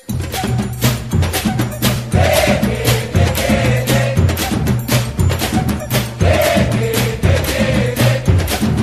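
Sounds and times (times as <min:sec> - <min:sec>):
Brazilian samba music: 0:00.1 - 0:08.8.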